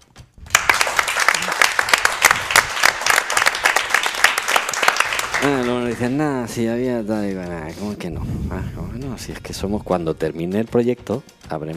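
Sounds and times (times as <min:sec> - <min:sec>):
audience applause: 0:00.5 - 0:06.4
speech: 0:05.4 - 0:11.7.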